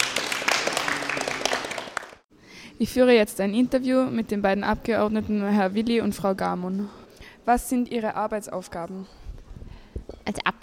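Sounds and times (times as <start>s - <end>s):
group of people applauding: 0.0s - 2.3s
speech: 2.8s - 9.2s, 10.3s - 10.6s.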